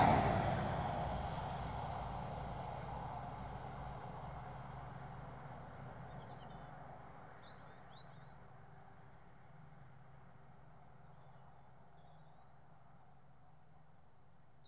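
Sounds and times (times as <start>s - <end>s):
Inter City 125 trains passing: 0.0s - 5.2s.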